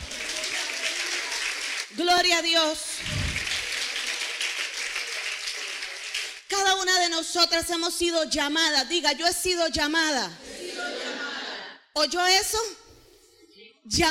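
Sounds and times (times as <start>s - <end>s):
audience applause: 0.0s - 2.0s, 3.0s - 6.5s
speech: 2.0s - 3.2s, 6.7s - 10.5s, 12.0s - 12.8s, 13.8s - 14.0s.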